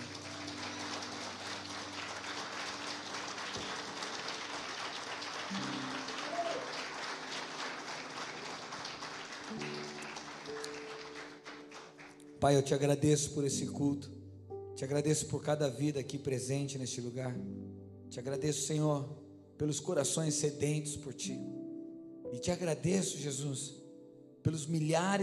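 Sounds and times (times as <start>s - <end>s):
audience applause: 0.0s - 12.3s
speech: 12.4s - 14.2s, 14.8s - 21.6s, 22.3s - 23.8s, 24.4s - 25.2s.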